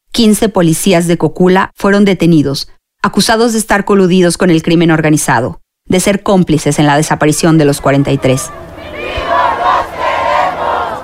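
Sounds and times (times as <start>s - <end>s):
speech: 0.2s - 9.4s
protest crowd shouting: 7.9s - 11.0s.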